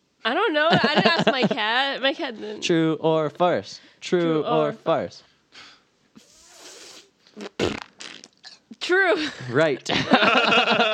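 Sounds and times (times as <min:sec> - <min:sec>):
speech: 0:00.2 - 0:05.7, 0:08.8 - 0:10.9
voice imitating fart noises with the mouth: 0:06.2 - 0:08.7
laughter: 0:09.2 - 0:10.9.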